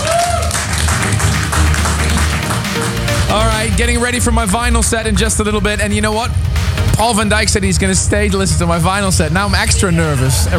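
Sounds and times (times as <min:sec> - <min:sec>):
audience applause: 0:00.0 - 0:03.3
speech: 0:03.6 - 0:10.5.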